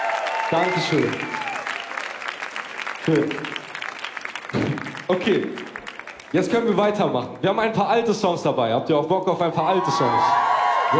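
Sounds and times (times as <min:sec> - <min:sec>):
audience applause: 0:00.0 - 0:06.8, 0:10.0 - 0:10.9
speech: 0:00.5 - 0:01.5, 0:03.1 - 0:03.6, 0:04.5 - 0:05.7, 0:06.3 - 0:10.9.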